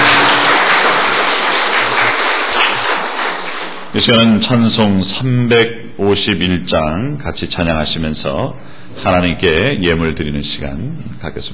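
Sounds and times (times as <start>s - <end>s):
large group applauding: 0.0s - 3.9s
speech: 4.0s - 11.5s.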